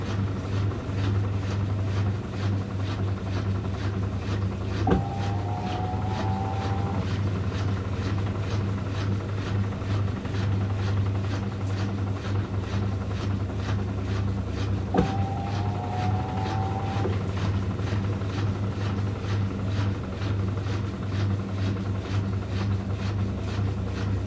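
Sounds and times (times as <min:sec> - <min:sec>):
washing machine humming: 0:00.0 - 0:24.2
rising whine: 0:04.9 - 0:07.1, 0:14.9 - 0:17.2.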